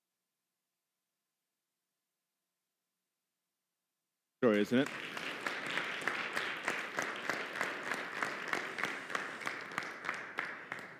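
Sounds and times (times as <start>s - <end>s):
speech: 4.4s - 5.2s
audience applause: 4.5s - 10.9s.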